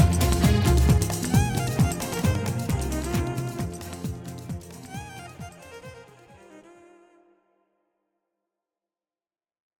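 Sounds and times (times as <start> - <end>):
jazz funk music: 0.0 - 6.3
violin: 0.0 - 7.5.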